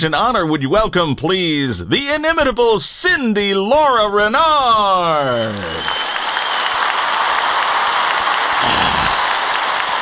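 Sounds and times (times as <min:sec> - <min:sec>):
speech: 0:00.0 - 0:06.1
crowd applauding: 0:05.1 - 0:09.9.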